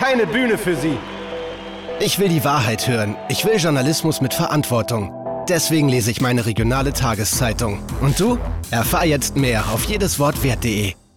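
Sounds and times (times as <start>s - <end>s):
rock funk music: 0.2s - 11.0s.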